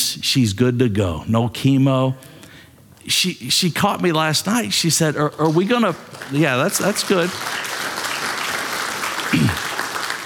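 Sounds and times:
speech: 0.2 - 2.3, 3.1 - 7.7
audience applause: 5.1 - 10.2.

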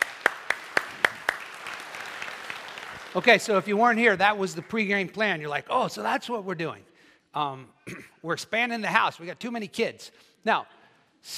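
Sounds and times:
audience clapping: 0.0 - 5.1
speech: 3.1 - 11.3.

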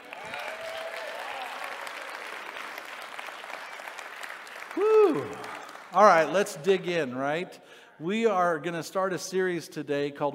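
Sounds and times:
audience applause: 0.0 - 6.3
speech: 4.8 - 10.3.

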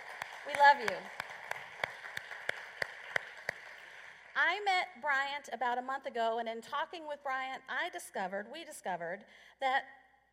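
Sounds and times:
audience applause: 0.0 - 4.4
speech: 0.5 - 1.2, 4.4 - 10.0.

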